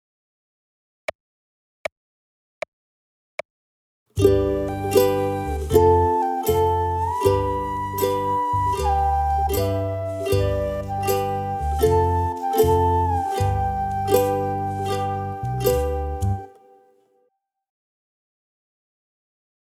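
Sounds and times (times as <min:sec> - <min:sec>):
ukulele: 0:04.2 - 0:17.0.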